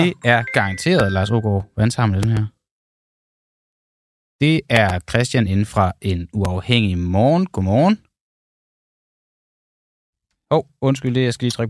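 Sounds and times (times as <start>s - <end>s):
phone ringing with incoming call: 0.0s - 1.6s
speech: 0.0s - 2.6s, 4.4s - 8.1s, 10.5s - 11.6s.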